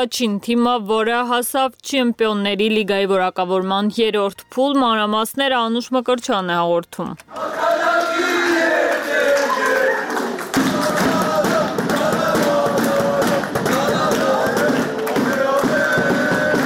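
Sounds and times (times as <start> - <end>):
speech: 0.0 - 8.4
football fans cheering at Zvartnots airport greeting the returning team: 7.3 - 16.6
football fans drumming at Zvartnots airport: 10.5 - 16.6.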